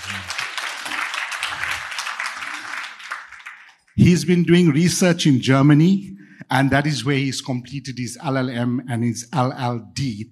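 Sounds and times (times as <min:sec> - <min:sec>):
audience applause: 0:00.0 - 0:03.9
speech: 0:04.0 - 0:10.3.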